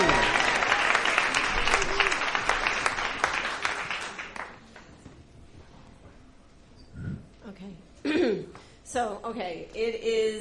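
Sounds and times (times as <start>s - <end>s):
audience applause: 0.0s - 4.8s
speech: 9.0s - 10.3s.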